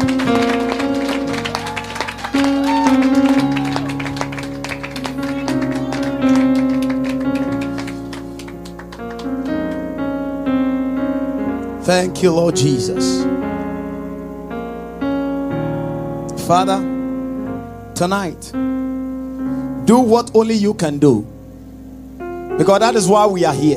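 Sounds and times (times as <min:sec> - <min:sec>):
crowd clapping: 0:00.0 - 0:10.0
sustained keyboard or organ chords: 0:00.0 - 0:23.7
speech: 0:12.0 - 0:13.4, 0:16.5 - 0:16.9, 0:18.0 - 0:18.7, 0:19.9 - 0:21.3, 0:22.6 - 0:23.7.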